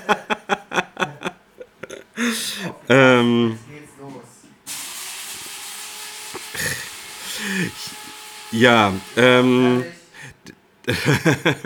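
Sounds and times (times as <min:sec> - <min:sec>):
laughter: 0:00.0 - 0:02.6, 0:06.6 - 0:08.0, 0:10.9 - 0:11.6
speech: 0:02.3 - 0:03.6, 0:08.5 - 0:10.0, 0:10.9 - 0:11.6
coffee machine sputtering and gurgling while brewing: 0:04.7 - 0:09.0
coffee machine brewing coffee with steamy hiss: 0:04.7 - 0:10.4.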